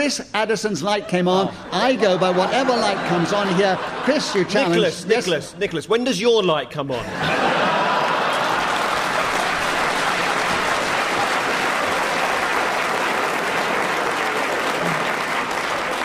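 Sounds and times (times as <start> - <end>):
speech: 0.0 - 7.5
laughter: 0.9 - 5.6, 7.0 - 16.0
audience clapping: 7.2 - 16.0.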